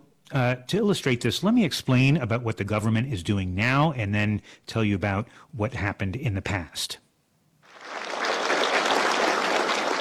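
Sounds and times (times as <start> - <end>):
speech: 0.3 - 7.0
executives applauding in a meeting hall: 7.7 - 9.9.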